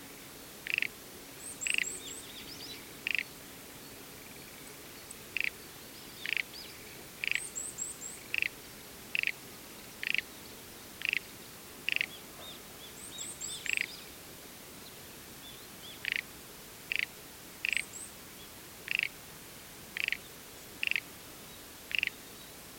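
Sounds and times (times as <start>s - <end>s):
Schlegel's green tree frog calling: 0.7s - 0.9s, 1.6s - 2.0s, 3.0s - 3.3s, 5.4s - 5.6s, 6.2s - 6.5s, 7.2s - 7.5s, 8.2s - 9.4s, 10.0s - 10.3s, 11.0s - 11.3s, 11.9s - 12.2s, 13.6s - 13.9s, 16.0s - 16.3s, 16.9s - 18.0s, 18.9s - 19.1s, 20.0s - 20.2s, 20.8s - 21.1s, 21.9s - 22.2s.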